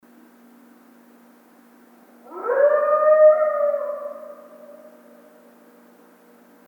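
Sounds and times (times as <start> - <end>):
long muffled wolf howl: 2.2 - 6.0.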